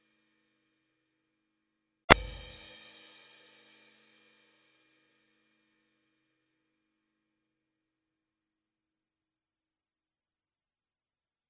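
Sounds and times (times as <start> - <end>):
swing drum beat: 2.1 - 2.8.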